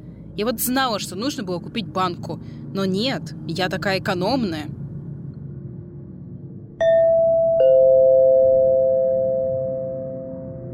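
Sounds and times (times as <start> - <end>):
speech: 0.4 - 4.8
doorbell two-note ding-dong: 6.8 - 10.7.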